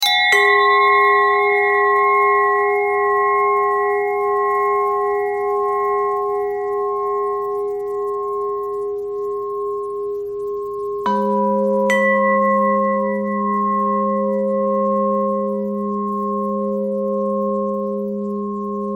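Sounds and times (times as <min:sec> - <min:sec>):
pentatonic bell melody: 0:00.0 - 0:18.9.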